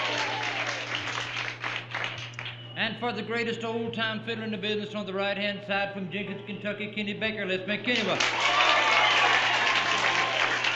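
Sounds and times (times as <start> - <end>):
audience applause for a bluegrass bass fiddle player: 0.0 - 2.6, 8.1 - 10.7
speech: 2.8 - 8.5.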